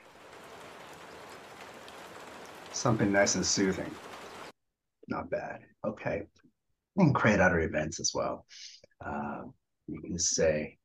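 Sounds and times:
light rain: 0.0s - 4.5s
speech: 2.8s - 4.1s, 5.1s - 10.8s.

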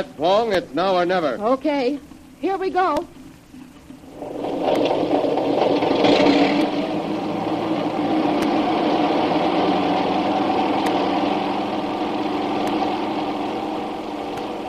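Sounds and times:
speech: 0.0s - 3.2s
incoming airplane engine: 4.1s - 14.6s.

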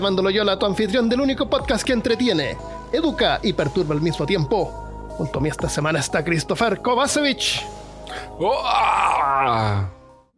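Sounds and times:
speech: 0.0s - 10.0s
person screaming: 8.1s - 10.0s.

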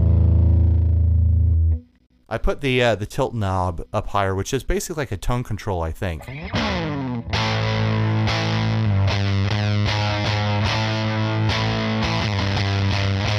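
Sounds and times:
electric guitar chords through a fuzz pedal: 0.0s - 2.0s, 6.2s - 13.3s
speech: 2.3s - 6.8s.

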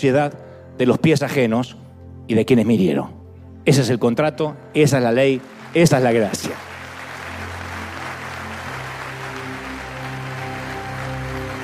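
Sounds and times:
speech: 0.0s - 6.7s
audience applauding: 5.4s - 11.6s.

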